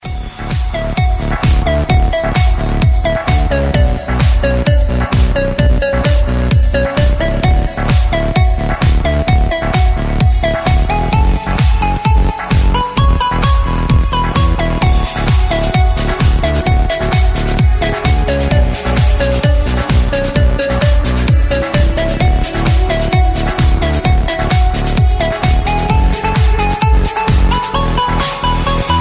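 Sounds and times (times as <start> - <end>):
electro ringtone: 0.0 - 29.0.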